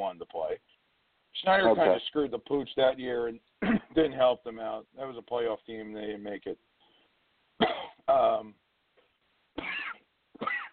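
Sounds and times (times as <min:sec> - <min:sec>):
speech: 0:01.4 - 0:06.7, 0:07.6 - 0:08.6
person coughing and choking from allergies: 0:03.6 - 0:04.0, 0:07.6 - 0:08.0, 0:09.6 - 0:10.7.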